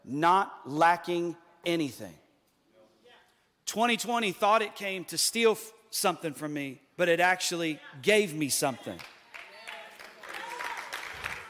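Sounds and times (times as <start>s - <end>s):
speech: 0.1s - 2.2s, 3.7s - 9.1s
audience clapping hands: 8.9s - 11.4s.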